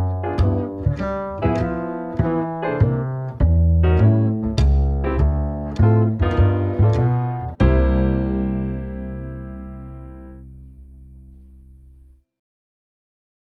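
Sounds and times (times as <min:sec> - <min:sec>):
blues drums: 0:00.0 - 0:09.4.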